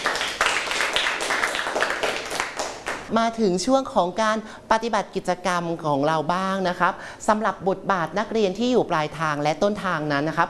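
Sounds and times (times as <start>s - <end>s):
applause: 0.0s - 3.1s
speech: 3.1s - 10.4s.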